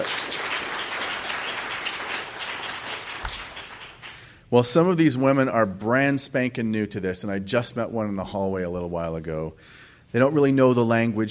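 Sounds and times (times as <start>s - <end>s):
crowd applause: 0.0s - 4.3s
speech: 4.5s - 11.2s.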